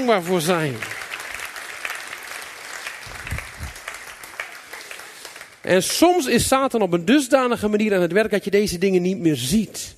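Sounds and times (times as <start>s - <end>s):
speech: 0.0s - 1.0s, 5.7s - 9.9s
audience applause: 0.0s - 6.3s.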